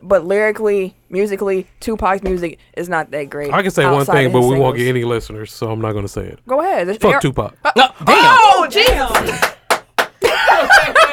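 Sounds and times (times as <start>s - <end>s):
speech: 0.1s - 9.6s
clapping: 8.8s - 10.3s
laughter: 10.2s - 11.1s.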